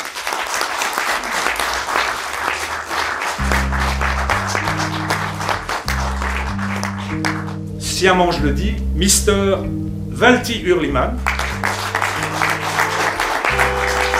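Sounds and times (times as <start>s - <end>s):
audience applause: 0.0s - 7.6s, 11.2s - 14.1s
speech: 8.0s - 11.3s.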